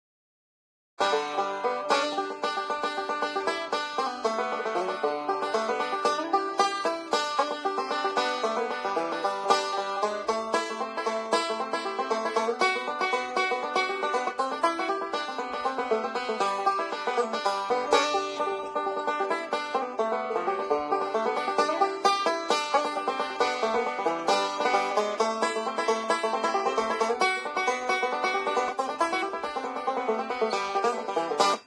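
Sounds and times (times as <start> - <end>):
banjo: 1.0 - 31.6.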